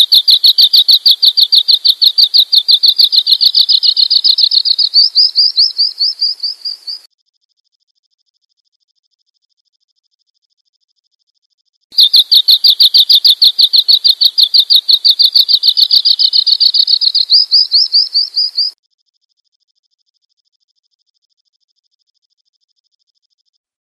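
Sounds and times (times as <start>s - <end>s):
bird chirping: 0.0s - 7.1s, 12.0s - 18.8s.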